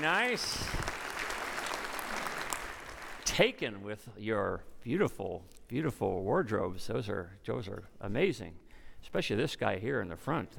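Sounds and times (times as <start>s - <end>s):
speech: 0.0s - 0.8s, 3.3s - 10.5s
audience applause: 0.0s - 3.3s.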